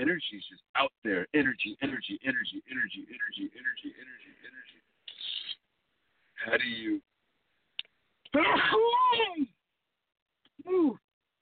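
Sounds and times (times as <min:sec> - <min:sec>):
speech: 0:00.0 - 0:04.6, 0:06.4 - 0:07.1, 0:08.3 - 0:09.6, 0:10.6 - 0:11.0
loud sneeze: 0:08.4 - 0:09.5.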